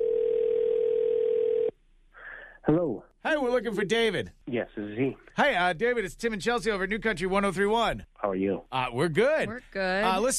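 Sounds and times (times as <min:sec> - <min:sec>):
telephone dial tone: 0:00.0 - 0:01.7
speech: 0:02.6 - 0:10.3.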